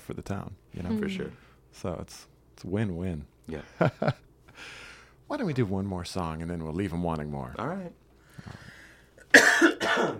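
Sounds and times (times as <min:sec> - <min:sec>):
speech: 0:00.1 - 0:08.6
throat clearing: 0:09.3 - 0:10.1.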